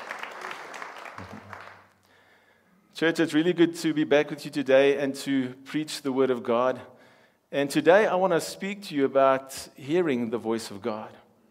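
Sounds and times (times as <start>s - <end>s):
audience applause: 0.0s - 1.9s
speech: 3.0s - 11.2s.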